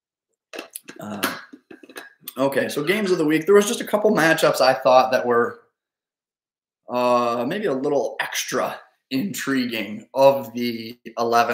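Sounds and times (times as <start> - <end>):
person taking a swig of a drink: 0.6 - 2.4
speech: 1.0 - 1.4, 2.4 - 5.6, 6.9 - 11.5.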